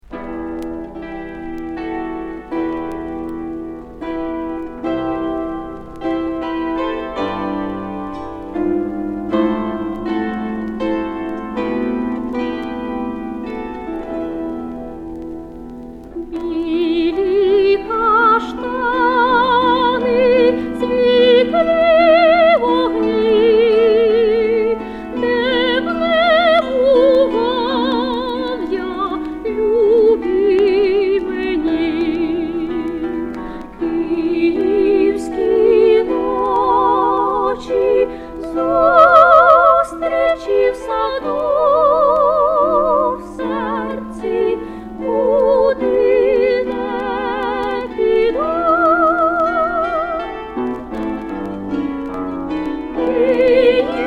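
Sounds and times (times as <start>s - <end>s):
female bandura trio: 0.1s - 54.0s.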